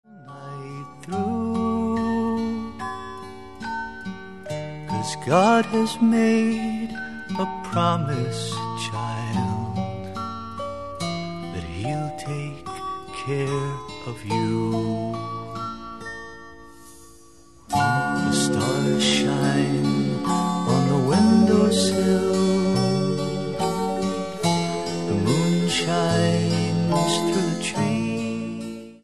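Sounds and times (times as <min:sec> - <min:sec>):
lullaby music: 0:00.1 - 0:29.0.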